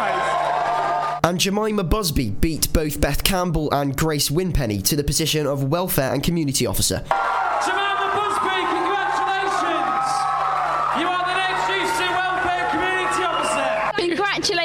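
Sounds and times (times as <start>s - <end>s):
crowd cheering: 0.0s - 1.2s, 7.1s - 14.5s
speech: 1.2s - 7.8s.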